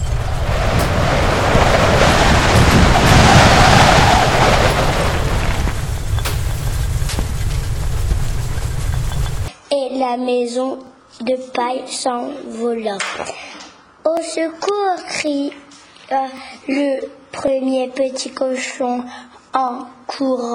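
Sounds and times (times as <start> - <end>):
wolf blowing hard like strong wind: 0.0 - 9.5
speech: 10.1 - 20.5.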